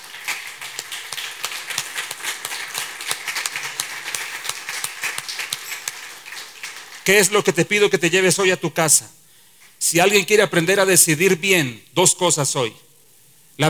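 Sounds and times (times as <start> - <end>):
audience applause: 0.0 - 8.0
speech: 7.1 - 9.2, 9.9 - 12.9.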